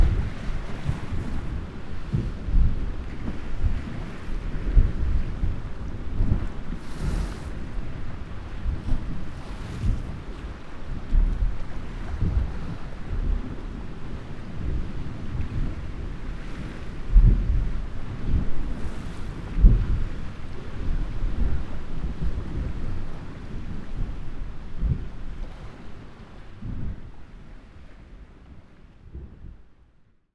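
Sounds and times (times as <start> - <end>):
pounding surf on inland waters: 0.0 - 27.7.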